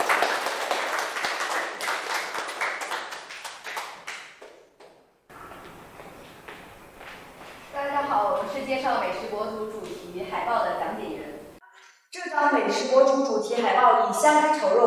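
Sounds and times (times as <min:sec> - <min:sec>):
audience applause: 0:00.0 - 0:04.4
soft hissy room background: 0:05.3 - 0:11.6
speech: 0:12.6 - 0:14.8.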